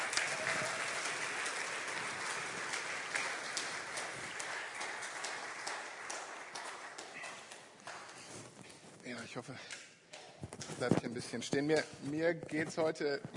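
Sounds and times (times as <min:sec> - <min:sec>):
audience applause for the band: 0:00.0 - 0:08.0
speech: 0:09.3 - 0:09.8, 0:10.7 - 0:13.3.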